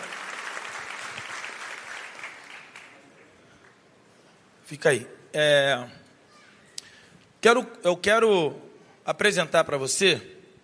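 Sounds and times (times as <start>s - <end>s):
crowd applauding: 0.0s - 3.8s
speech: 4.7s - 6.0s, 7.4s - 10.4s.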